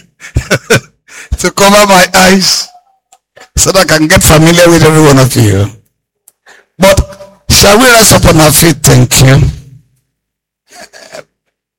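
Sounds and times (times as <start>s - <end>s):
speech: 0.5s - 2.7s, 3.5s - 5.8s, 6.8s - 9.6s
person sneezing: 10.7s - 11.4s.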